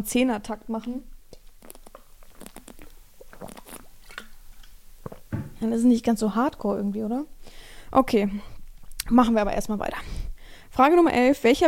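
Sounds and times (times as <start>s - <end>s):
speech: 0.0s - 1.1s, 5.6s - 8.5s, 9.1s - 10.2s, 10.8s - 11.6s
person taking a quick sip of a drink: 1.3s - 5.6s.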